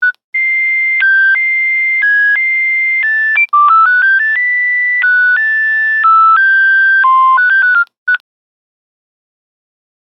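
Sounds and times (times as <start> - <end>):
mobile phone ringtone melody on a Nokia 9210: 0.4 - 7.9.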